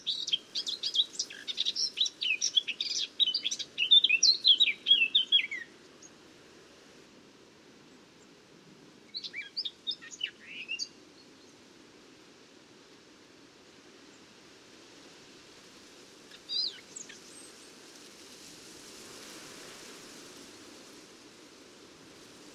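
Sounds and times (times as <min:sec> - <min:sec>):
Eurasian blackcap warbling song: 0:00.0 - 0:05.7, 0:09.1 - 0:11.0, 0:16.3 - 0:17.5.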